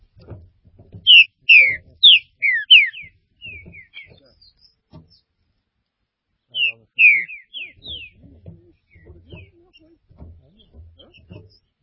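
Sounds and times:
green-winged saltator whistling: 0:01.1 - 0:04.1, 0:06.6 - 0:08.2.

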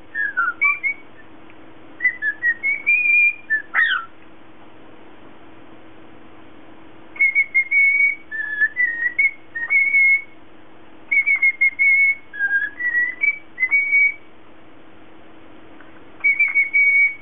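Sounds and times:
lutino cockatiel whistling a melody: 0:00.1 - 0:01.3, 0:02.0 - 0:04.1, 0:07.2 - 0:10.4, 0:11.1 - 0:14.3, 0:16.2 - 0:17.2.

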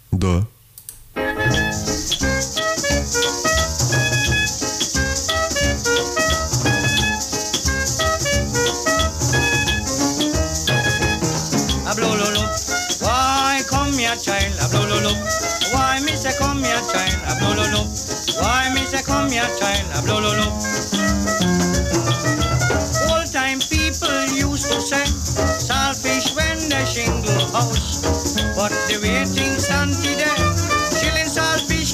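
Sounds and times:
speech: 0:00.1 - 0:00.6, 0:27.0 - 0:30.5
cheerful calypso music recording: 0:01.2 - 0:31.9.

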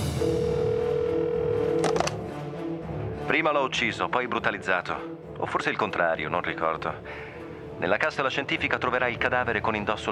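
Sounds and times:
telephone dial tone: 0:00.2 - 0:02.2
speech: 0:03.4 - 0:10.1.

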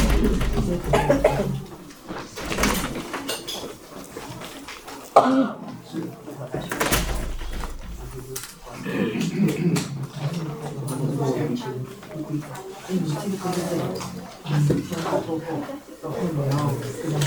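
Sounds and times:
people talking: 0:00.0 - 0:17.2
raspy coughs: 0:00.9 - 0:01.6, 0:05.2 - 0:05.6.

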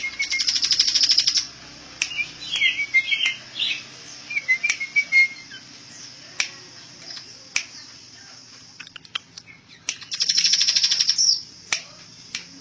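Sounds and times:
bird singing trill, chirps and whistles: 0:00.0 - 0:06.2, 0:08.9 - 0:11.5.

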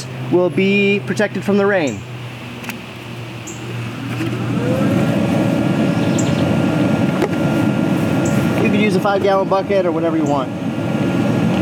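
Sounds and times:
compost aerator air pump motor droning: 0:00.0 - 0:11.5
speech: 0:00.3 - 0:02.1, 0:08.9 - 0:10.6.

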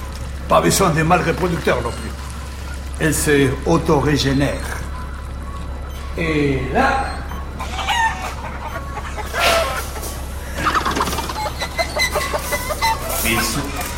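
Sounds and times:
low constant hum: 0:00.0 - 0:13.9
speech: 0:00.5 - 0:02.2, 0:03.0 - 0:04.8, 0:06.2 - 0:07.2
sickly chickens clucking and squawking: 0:06.8 - 0:13.9.

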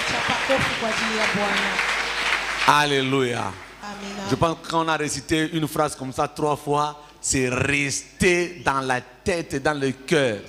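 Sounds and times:
church congregation shouting and cheering: 0:00.0 - 0:01.9
church congregation applauding at a New Year service: 0:00.0 - 0:04.5
speech: 0:01.2 - 0:01.9, 0:02.6 - 0:10.4.

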